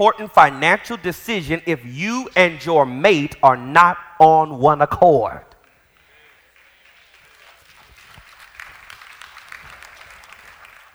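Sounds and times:
speech: 0.0s - 5.5s
brief scattered audience clapping: 5.6s - 10.9s.

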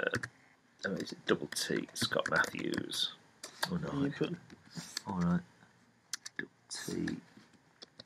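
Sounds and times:
typing on a computer keyboard: 0.2s - 2.8s
speech: 0.8s - 5.5s, 6.9s - 7.3s.

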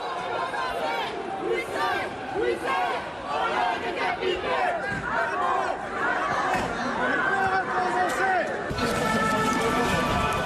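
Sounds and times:
crowd chanting: 0.0s - 7.7s
protest crowd shouting in city streets: 0.0s - 10.4s.

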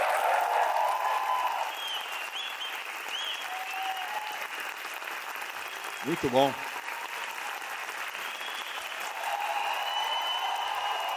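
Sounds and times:
audience applause: 0.0s - 11.1s
speech: 6.0s - 6.7s.

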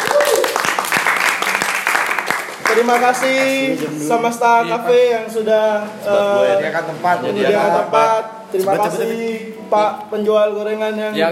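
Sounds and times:
audience applause at a café music night: 0.0s - 4.0s
speech: 2.8s - 11.3s.

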